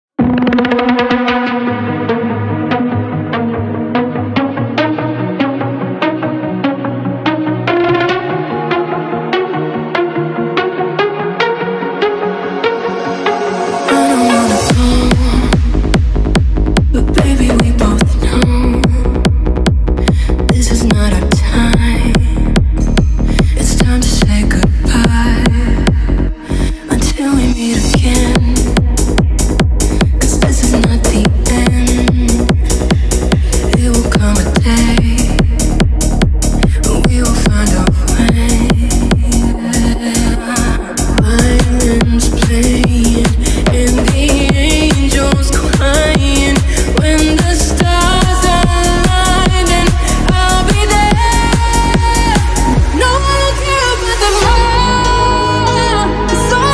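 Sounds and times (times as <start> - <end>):
techno remix: 0.2 - 56.7.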